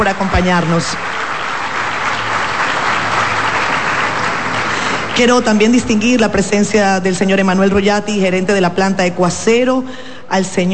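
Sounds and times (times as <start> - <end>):
speech: 0.0 - 1.2, 5.2 - 10.7
audience applause: 0.0 - 5.6.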